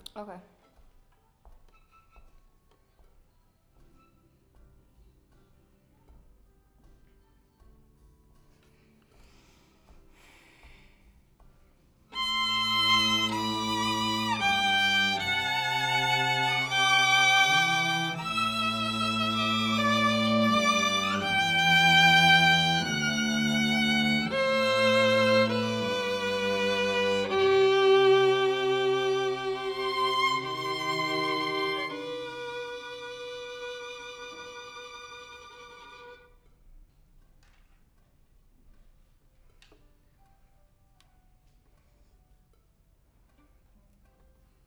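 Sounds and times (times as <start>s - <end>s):
violin: 12.1s - 36.5s.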